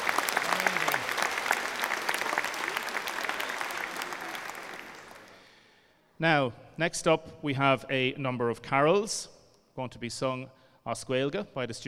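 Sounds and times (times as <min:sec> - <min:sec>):
audience applause: 0:00.0 - 0:05.6
speech: 0:06.2 - 0:11.8.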